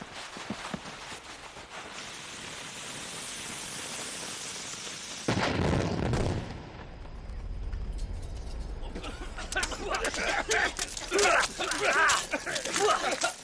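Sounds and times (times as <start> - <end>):
explosives detonated on a rock face: 5.3 - 7.9
laughter: 8.8 - 13.4.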